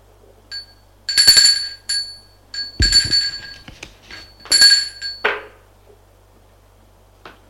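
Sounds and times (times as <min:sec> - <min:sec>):
metallic doorbell ringing: 0:00.5 - 0:05.5.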